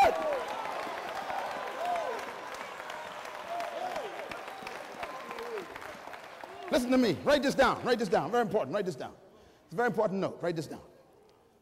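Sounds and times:
audience applauding: 0.0s - 8.4s
speech: 6.8s - 10.9s.

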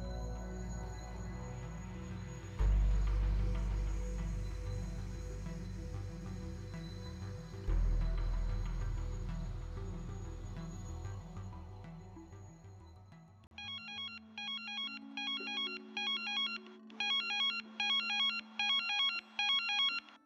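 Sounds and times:
low music: 0.0s - 12.6s
telephone's bright electronic ringtone: 13.6s - 20.2s.

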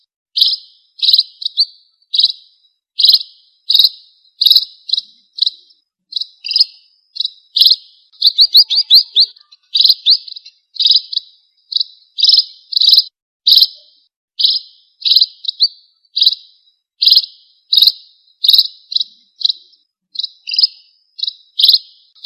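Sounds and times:
red-throated parrotfinch Erythrura psittacea song: 0.0s - 22.2s.

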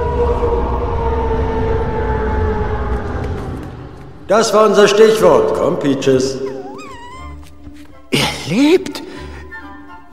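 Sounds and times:
long loud droning roar: 0.0s - 4.2s
speech: 4.3s - 6.5s.

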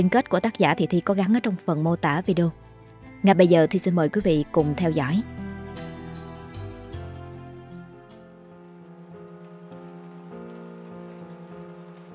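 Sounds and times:
speech: 0.0s - 2.6s, 3.2s - 5.3s
rain falling: 6.3s - 12.1s.

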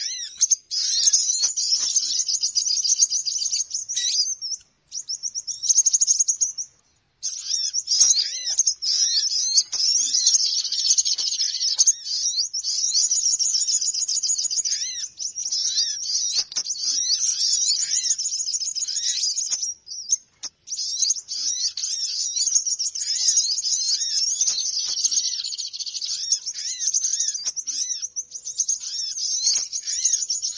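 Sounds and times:
birds chattering: 0.0s - 30.5s.

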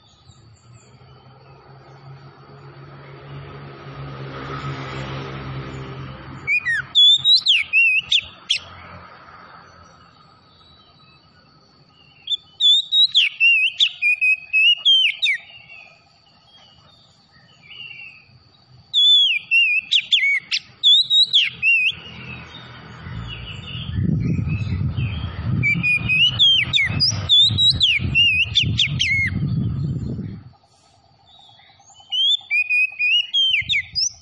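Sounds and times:
Oriental magpie-robin singing: 6.4s - 8.7s, 11.9s - 22.6s, 23.3s - 30.3s, 31.2s - 34.2s
steady low rumble: 23.0s - 32.0s.

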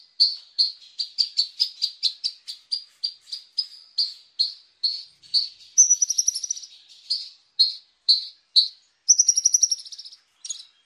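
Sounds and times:
Horsfield's bushlark song with high chirped notes: 0.0s - 10.8s.

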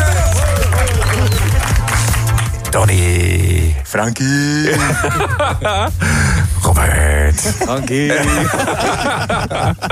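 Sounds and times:
applause greeting guests in a radio studio: 0.0s - 2.7s
speech: 2.8s - 9.9s
laughter: 4.6s - 6.0s, 7.4s - 9.9s.

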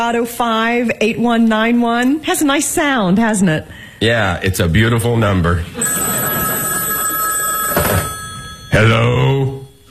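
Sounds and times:
speech: 0.0s - 6.2s, 8.8s - 9.5s
telephone bell ringing: 5.8s - 9.8s.

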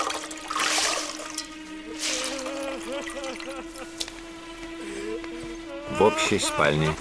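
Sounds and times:
wet towel wrung out over water basin: 0.0s - 3.6s
speech: 5.9s - 6.9s.

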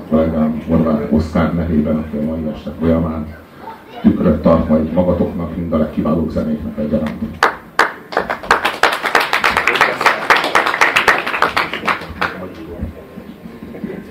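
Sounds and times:
speech: 0.1s - 7.6s
audience applause: 7.4s - 12.7s.

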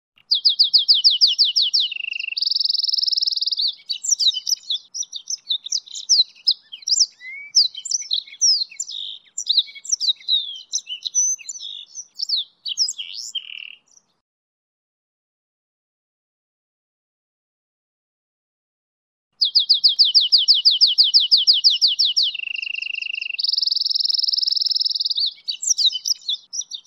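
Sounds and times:
goldfinch and canary hybrid singing a high varied warble: 0.2s - 14.2s, 19.4s - 26.8s.

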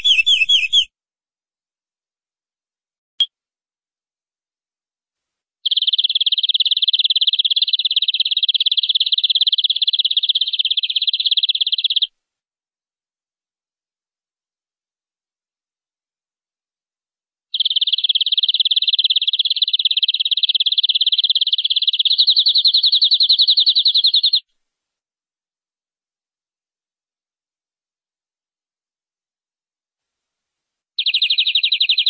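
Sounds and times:
canary song trill: 0.0s - 0.9s, 5.6s - 12.1s, 17.5s - 24.4s, 31.0s - 32.0s.

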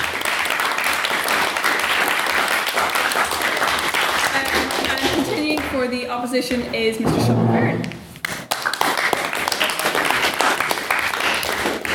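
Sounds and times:
audience applause: 0.0s - 5.6s, 8.3s - 11.9s
speech: 5.8s - 8.0s.

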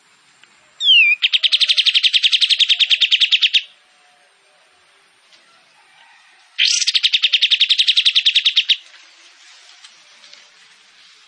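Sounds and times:
kapas tembak song: 0.8s - 3.8s, 6.6s - 8.9s.

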